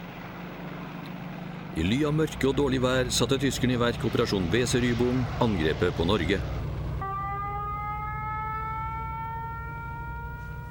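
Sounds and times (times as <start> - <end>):
speech: 1.8 - 6.6
air raid siren wailing: 6.8 - 10.6.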